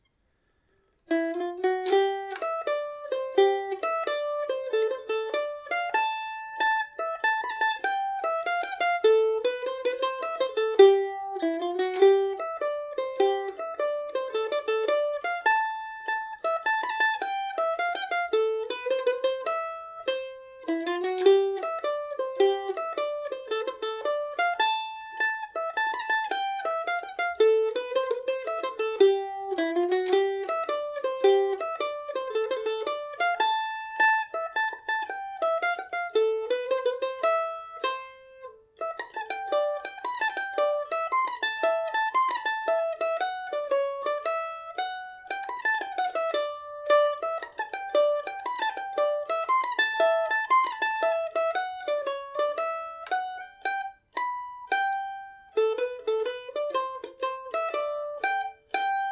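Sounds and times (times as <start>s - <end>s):
mandolin barn dance tune in C major and G major: 0.0s - 59.0s.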